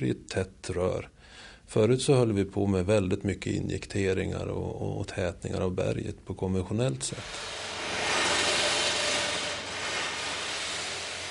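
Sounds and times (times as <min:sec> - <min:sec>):
speech: 0:00.0 - 0:07.7
tunnel boring machine running: 0:07.1 - 0:11.2.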